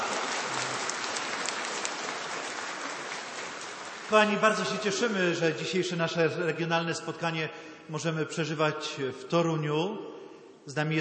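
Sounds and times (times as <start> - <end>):
applause: 0.0 - 5.2
speech: 4.1 - 10.9.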